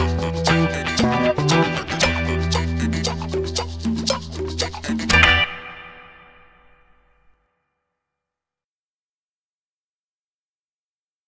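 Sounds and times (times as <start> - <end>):
backing music: 0.0 - 6.7.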